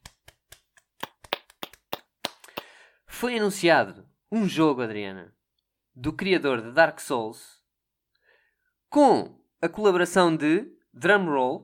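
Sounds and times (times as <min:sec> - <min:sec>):
hand clapping: 0:00.0 - 0:02.8
speech: 0:03.2 - 0:05.4, 0:06.0 - 0:07.6, 0:08.9 - 0:11.6.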